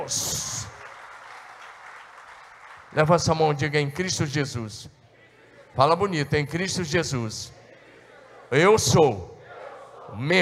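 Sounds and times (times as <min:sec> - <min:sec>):
speech: 0:00.0 - 0:00.5, 0:02.9 - 0:05.0, 0:05.8 - 0:07.6, 0:08.5 - 0:09.4, 0:10.1 - 0:10.4
audience applause: 0:00.0 - 0:03.2.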